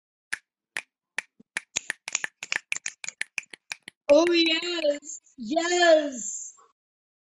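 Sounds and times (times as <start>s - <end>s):
finger snapping: 0.3s - 4.0s
speech: 4.1s - 6.4s.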